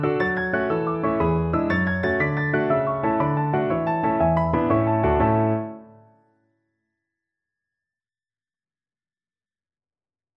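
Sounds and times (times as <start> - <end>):
piano playing Irish jig medley: 0.0 - 6.1.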